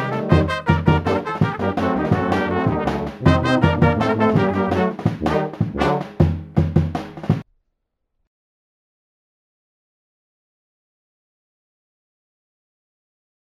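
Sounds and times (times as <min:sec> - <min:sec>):
music beat: 0:00.0 - 0:07.4.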